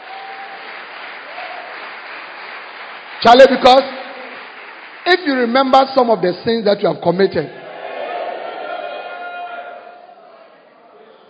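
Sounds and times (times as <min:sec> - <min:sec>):
audience clapping hands: 0:00.0 - 0:06.7
speech: 0:03.2 - 0:04.0, 0:05.0 - 0:07.6.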